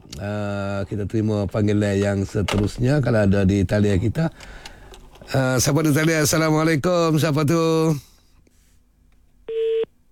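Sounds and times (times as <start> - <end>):
speech: 0.2 - 4.7, 5.3 - 8.1
telephone beep after a caller's line drops during a phone-in chat: 9.5 - 9.9.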